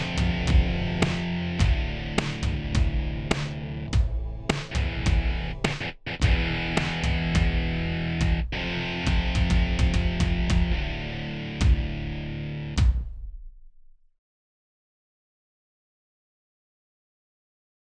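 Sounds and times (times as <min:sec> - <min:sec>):
MIDI music: 0:00.0 - 0:13.0.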